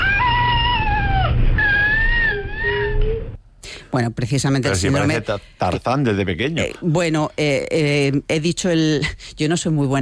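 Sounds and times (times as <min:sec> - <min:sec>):
baby with cri-du-chat syndrome crying in a shrill, cat-like tone: 0:00.0 - 0:03.2
speech: 0:03.9 - 0:10.0.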